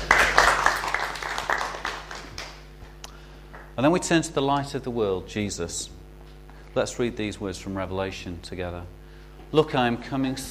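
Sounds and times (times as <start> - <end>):
audience clapping: 0.0 - 2.9, 3.5 - 3.8
speech: 3.8 - 6.0, 6.8 - 10.4.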